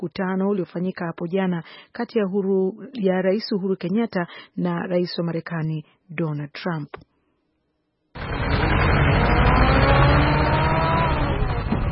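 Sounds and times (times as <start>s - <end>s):
speech: 0.0s - 7.1s
vehicle engine roar on the Nairobi–Mombasa highway at Mtito Andei, Kenya: 8.2s - 11.9s.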